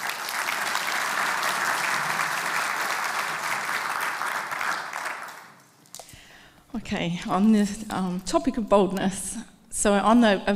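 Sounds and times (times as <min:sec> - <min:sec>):
church gathering audience clapping to welcome a speaker: 0:00.0 - 0:06.0
speech: 0:06.8 - 0:10.5.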